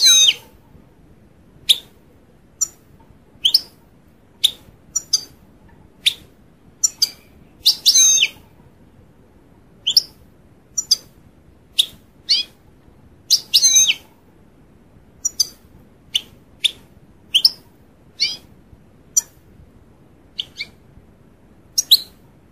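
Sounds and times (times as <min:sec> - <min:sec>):
European goldfinch chirping: 0:00.0 - 0:00.5, 0:04.4 - 0:05.4, 0:06.8 - 0:08.4, 0:10.8 - 0:11.1, 0:11.8 - 0:12.5, 0:13.3 - 0:14.0, 0:15.2 - 0:17.6, 0:18.2 - 0:18.4, 0:20.4 - 0:20.8.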